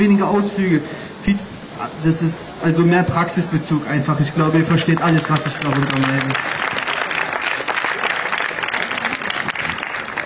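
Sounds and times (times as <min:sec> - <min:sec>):
speech: 0:00.0 - 0:06.7
audience applause: 0:04.9 - 0:10.2.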